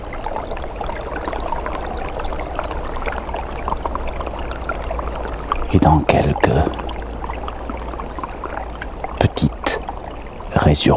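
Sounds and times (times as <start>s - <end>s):
water trickling under ice: 0.0s - 10.9s
speech: 5.7s - 6.8s, 10.6s - 10.9s.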